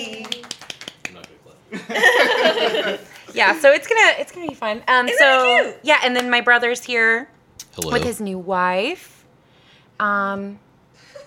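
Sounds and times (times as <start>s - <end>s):
people clapping: 0.0s - 1.4s
laughter: 1.7s - 3.4s
speech: 1.9s - 9.2s, 10.0s - 10.6s.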